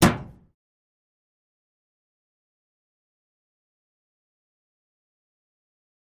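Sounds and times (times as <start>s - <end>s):
Model T hood opening and closing: 0.0s - 0.4s
single metal impact of a Model T hood: 0.0s - 0.5s.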